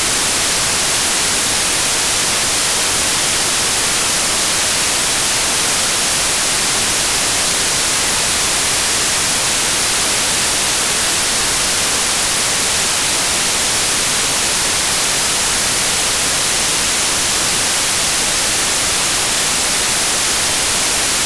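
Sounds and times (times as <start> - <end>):
white noise: 0.0 - 21.2.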